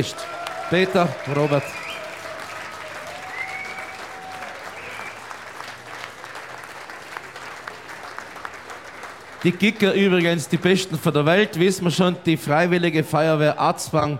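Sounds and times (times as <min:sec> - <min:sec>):
speech: 0:00.0 - 0:01.8, 0:09.4 - 0:14.1
large audience applause for a brass band: 0:00.0 - 0:11.5
faint whistles: 0:01.4 - 0:02.2, 0:03.2 - 0:05.3.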